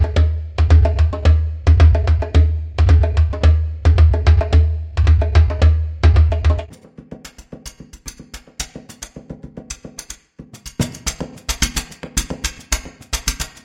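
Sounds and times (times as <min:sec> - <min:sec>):
ethnic percussion loops: 0:00.0 - 0:13.6.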